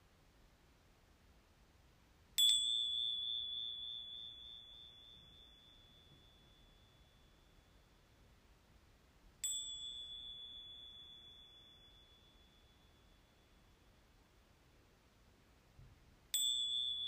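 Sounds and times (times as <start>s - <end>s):
small bell chiming: 2.4s - 8.5s, 9.4s - 14.3s, 16.3s - 17.0s.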